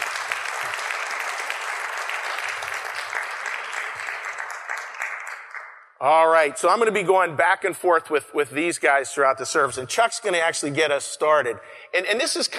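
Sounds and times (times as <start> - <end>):
audience applause: 0.0 - 5.8
speech: 6.0 - 12.5.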